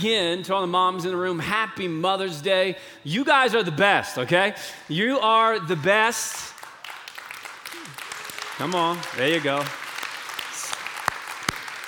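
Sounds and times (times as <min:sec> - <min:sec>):
speech: 0:00.0 - 0:06.5, 0:08.6 - 0:09.8
crowd clapping: 0:06.4 - 0:11.8.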